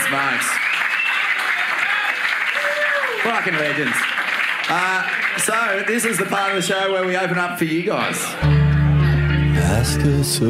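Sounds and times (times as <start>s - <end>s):
audience applause: 0.0s - 7.4s
speech: 0.1s - 0.7s, 3.2s - 8.6s, 9.6s - 10.4s
faint whistle or cheer: 0.4s - 3.2s.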